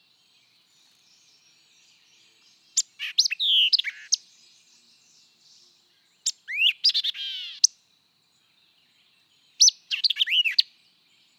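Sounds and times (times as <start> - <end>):
white-eyed vireo song of sharp chips and slurred whistles: 2.5 - 4.2, 6.2 - 7.7, 9.6 - 10.7.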